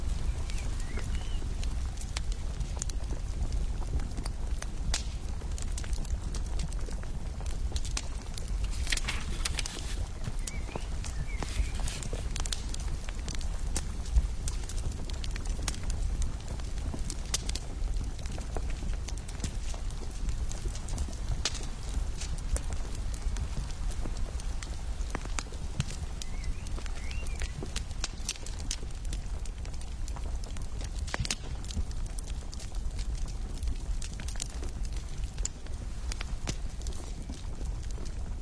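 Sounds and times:
firewood burning: 0:00.0 - 0:38.4
book pages turning in a Renaissance library: 0:08.6 - 0:10.1.

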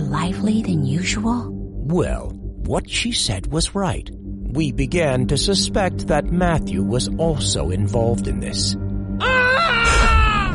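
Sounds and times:
speech: 0:00.1 - 0:09.7
man screaming: 0:09.2 - 0:10.5.

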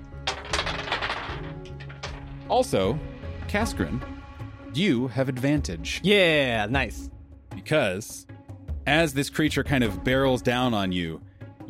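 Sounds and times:
dice being poured out and rolled: 0:00.2 - 0:02.5
speech: 0:02.5 - 0:11.6.

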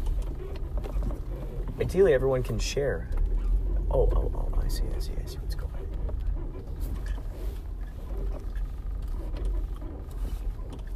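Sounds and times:
car tire noise on the road: 0:00.0 - 0:10.9
speech: 0:01.8 - 0:03.2, 0:03.9 - 0:05.7.

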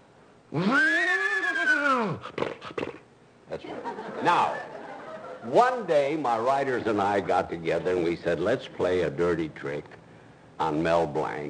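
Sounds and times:
speech: 0:00.5 - 0:00.9, 0:04.2 - 0:04.7, 0:05.4 - 0:10.0, 0:10.6 - 0:11.4
man imitating a horse whinny: 0:00.5 - 0:03.0
laughter: 0:03.5 - 0:05.7.

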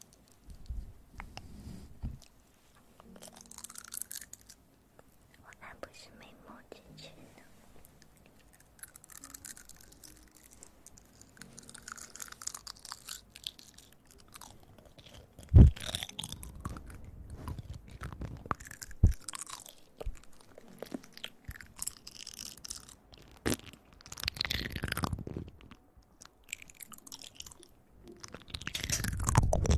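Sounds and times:
ear eating wet crunchy chewing and mouth sounds: 0:08.0 - 0:29.7.

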